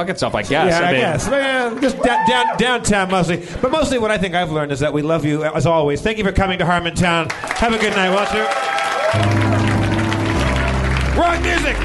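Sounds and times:
speech: 0:00.0 - 0:09.6, 0:11.2 - 0:11.8
audience clapping: 0:01.0 - 0:04.0, 0:07.2 - 0:11.8.

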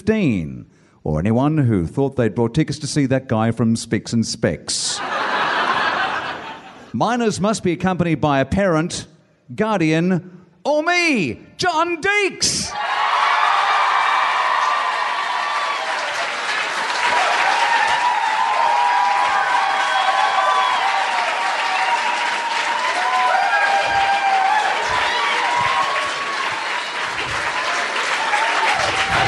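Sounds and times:
speech: 0:00.0 - 0:05.4, 0:06.9 - 0:12.9
laughter: 0:04.9 - 0:06.9
crowd applause and cheering: 0:12.7 - 0:29.2.

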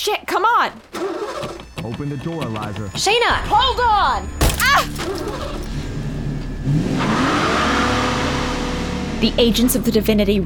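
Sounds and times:
speech: 0:00.0 - 0:05.8, 0:09.2 - 0:10.4
car engine idling, revving and accelerating away: 0:04.4 - 0:09.9.

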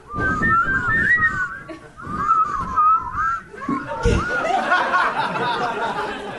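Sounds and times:
person attempting to whistle: 0:00.0 - 0:04.6
laughter: 0:01.6 - 0:02.3, 0:03.5 - 0:06.3.

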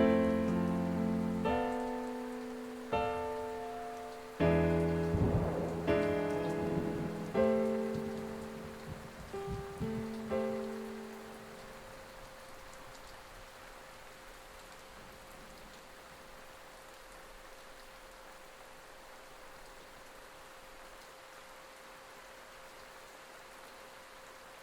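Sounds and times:
soft piano notes: 0:00.0 - 0:13.1
steady rain: 0:00.0 - 0:24.6.

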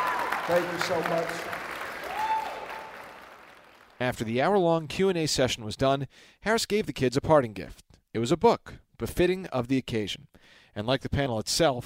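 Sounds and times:
round of applause for panelists: 0:00.0 - 0:04.0
speech: 0:00.5 - 0:01.6, 0:04.0 - 0:11.8.

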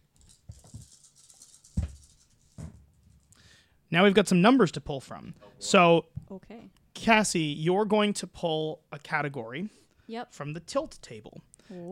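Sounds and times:
dice being rolled: 0:00.2 - 0:02.7
speech: 0:03.9 - 0:11.9.

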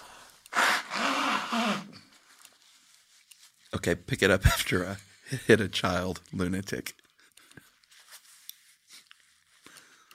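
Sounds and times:
person blowing their nose: 0:00.0 - 0:02.2
speech: 0:03.7 - 0:07.0.

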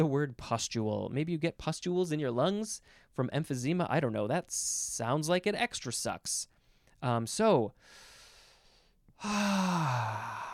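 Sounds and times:
speech: 0:00.0 - 0:08.1, 0:09.2 - 0:10.5
big deep inhale: 0:07.8 - 0:10.5
loud relieved voiced sigh: 0:09.2 - 0:10.5.

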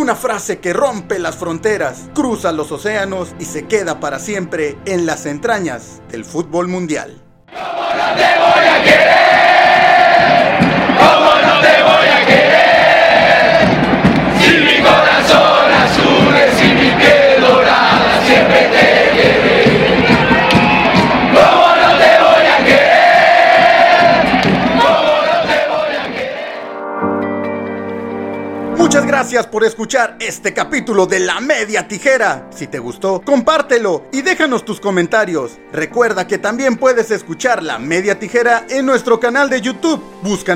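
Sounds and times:
speech: 0:00.0 - 0:09.3, 0:29.3 - 0:40.5
football crowd chanting in unison: 0:07.5 - 0:26.8.

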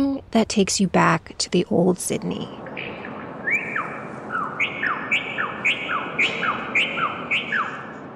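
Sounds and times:
soft hum: 0:00.0 - 0:02.6
speech: 0:00.2 - 0:02.6
delicate melodic birdsong in a laneway: 0:02.6 - 0:08.1.

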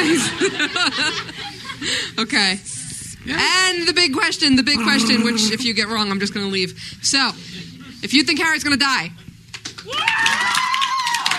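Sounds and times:
laughter: 0:00.0 - 0:02.0, 0:04.8 - 0:05.8
speech: 0:00.0 - 0:09.2, 0:09.8 - 0:10.6
quick claps or taps: 0:09.5 - 0:11.3
audience cheering: 0:09.8 - 0:11.3.

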